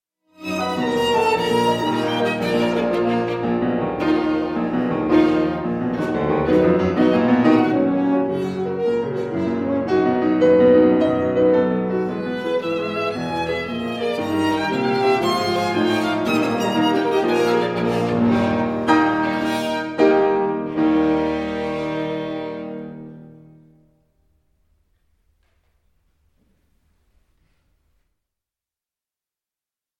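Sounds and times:
trio for horn, violin and piano: 0.3s - 23.9s.

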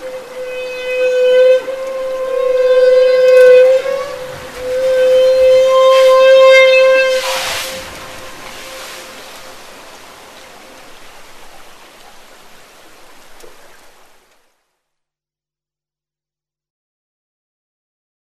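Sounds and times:
humpback whale song moans: 0.0s - 11.6s.

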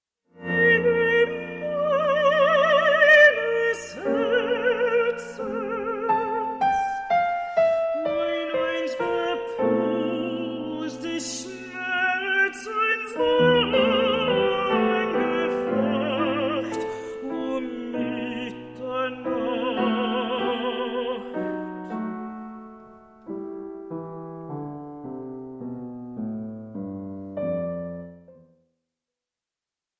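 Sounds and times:
piano: 0.3s - 28.8s
person singing: 0.4s - 22.6s.

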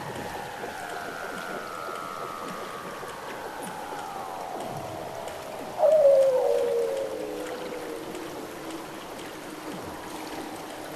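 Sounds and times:
soft hiss: 0.0s - 10.9s
Weddell seal gliding tonal call: 0.8s - 9.0s.

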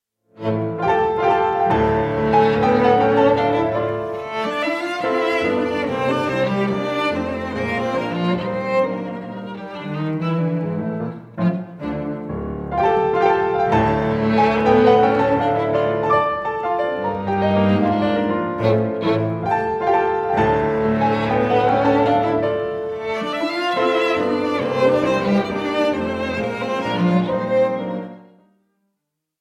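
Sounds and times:
piano trio playing a gavotte: 0.3s - 28.4s.

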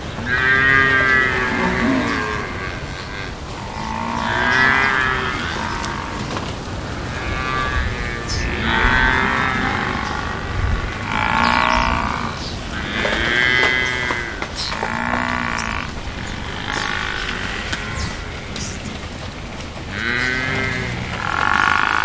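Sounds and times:
African buffalo giving deep short grunting moos: 0.2s - 18.8s, 19.9s - 22.0s.

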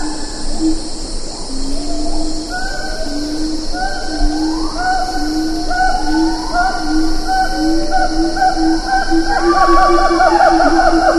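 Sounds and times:
insect chorus: 0.0s - 11.1s
siamang calls: 7.9s - 11.1s.

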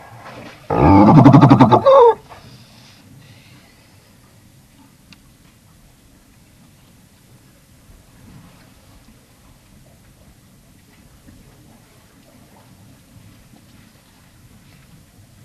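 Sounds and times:
Galapagos fur seal grunting and barking: 0.7s - 2.2s.

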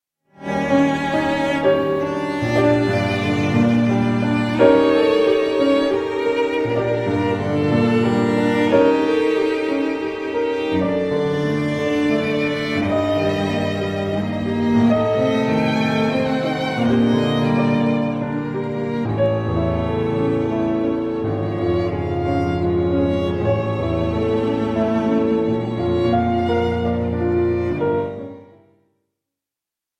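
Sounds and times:
trio for piano and strings in G minor: 0.3s - 28.7s.

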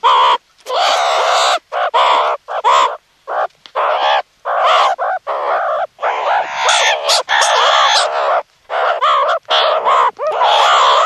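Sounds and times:
meerkat raspy harmonic chirps and squeals: 0.0s - 11.0s.

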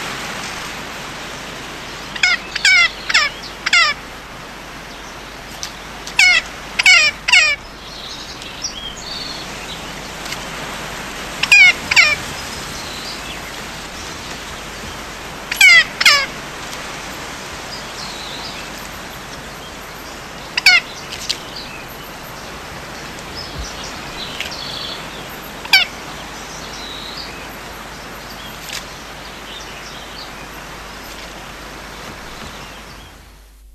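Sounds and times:
Magellanic woodpecker harsh nasal squawks: 2.2s - 4.0s, 6.1s - 7.7s, 11.4s - 12.3s, 15.5s - 16.3s, 20.5s - 21.7s, 25.7s - 26.0s.

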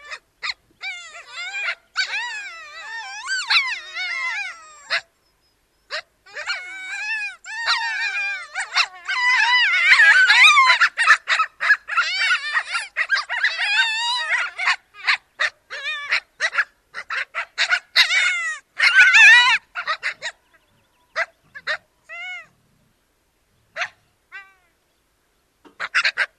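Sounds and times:
Ethiopian wolf chorus howling: 0.8s - 5.1s, 5.9s - 22.5s.

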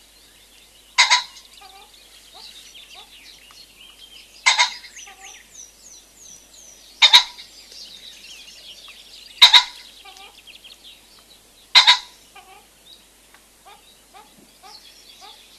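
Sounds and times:
common pheasant crowing: 0.9s - 3.2s, 4.4s - 5.5s, 7.0s - 7.6s, 9.3s - 10.5s, 11.7s - 12.8s, 13.6s - 15.5s.

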